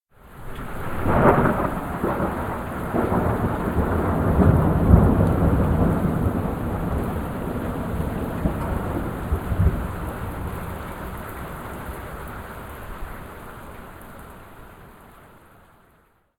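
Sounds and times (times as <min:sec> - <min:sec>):
thunder: 0:00.4 - 0:11.3.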